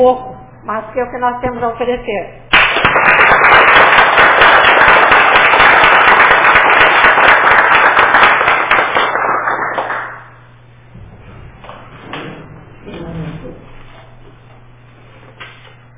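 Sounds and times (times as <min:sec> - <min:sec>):
speech: 0:00.0 - 0:03.6
standing ovation applause: 0:02.5 - 0:10.3.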